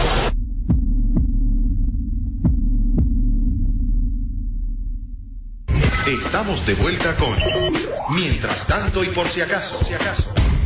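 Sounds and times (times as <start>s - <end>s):
heartbeat sound effect in a radio jingle: 0.4s - 5.2s
speech: 6.1s - 10.4s.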